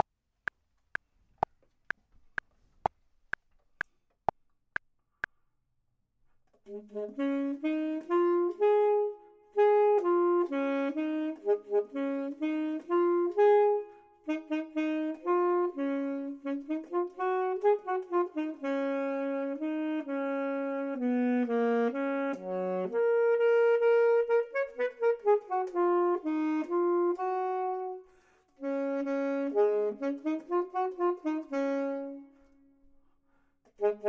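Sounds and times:
saxophone: 6.6s - 32.9s, 33.7s - 34.0s
clarinet: 6.7s - 32.9s, 33.7s - 34.0s.

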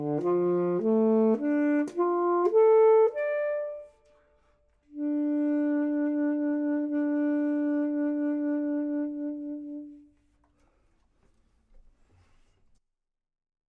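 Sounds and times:
saxophone: 0.0s - 10.3s
clarinet: 0.0s - 10.4s.

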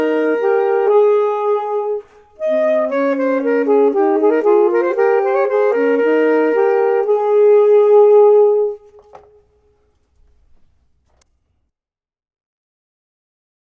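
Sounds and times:
saxophone: 0.0s - 9.8s
clarinet: 0.0s - 9.9s.

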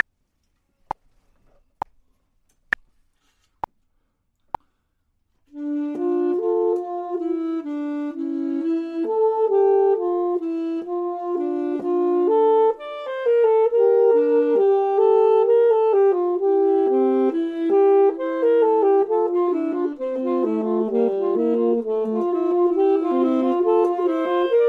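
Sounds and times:
clarinet: 5.5s - 24.6s
saxophone: 5.5s - 24.6s.

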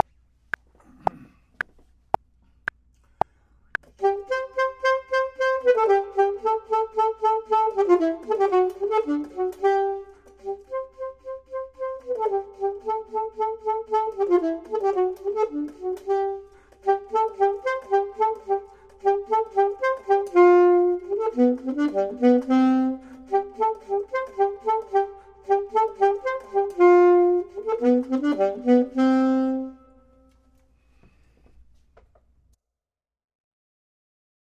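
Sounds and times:
saxophone: 3.8s - 30.7s
clarinet: 4.0s - 30.7s.

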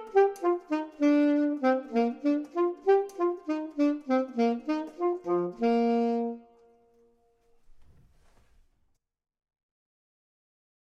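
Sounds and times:
saxophone: 0.0s - 7.1s
clarinet: 0.0s - 7.6s.

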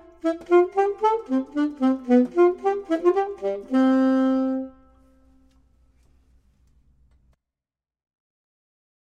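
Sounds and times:
clarinet: 0.0s - 5.7s
saxophone: 0.0s - 5.7s.

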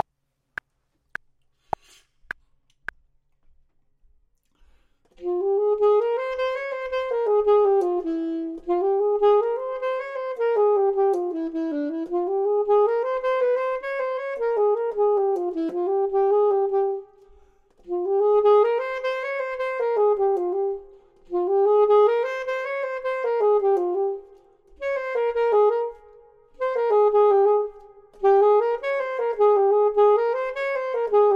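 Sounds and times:
saxophone: 4.6s - 31.3s
clarinet: 5.1s - 31.3s.

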